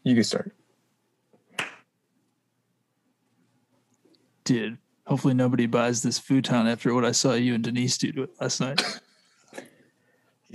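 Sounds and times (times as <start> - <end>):
speech: 0.0 - 0.6, 4.5 - 9.7
single hand clap for sync: 1.6 - 1.8.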